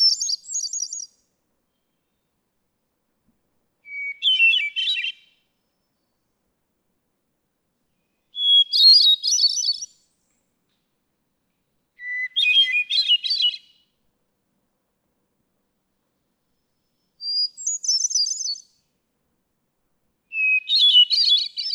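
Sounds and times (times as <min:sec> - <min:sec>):
hermit thrush singing: 0:00.0 - 0:01.2, 0:03.8 - 0:06.1, 0:08.0 - 0:10.0, 0:12.0 - 0:13.7, 0:17.2 - 0:18.8, 0:20.3 - 0:21.7.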